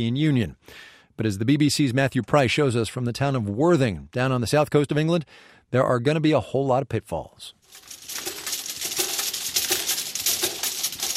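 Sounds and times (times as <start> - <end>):
speech: 0.0 - 8.0
glass vials clinking in a labelling machine: 7.7 - 11.1.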